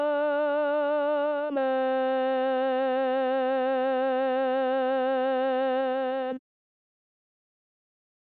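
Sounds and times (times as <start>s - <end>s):
alto voice singing a chorale: 0.0s - 6.4s.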